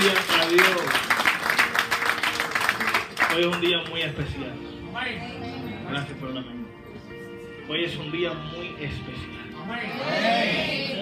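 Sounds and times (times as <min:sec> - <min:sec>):
audience applause: 0:00.0 - 0:04.0
speech: 0:03.4 - 0:06.7, 0:07.7 - 0:10.9.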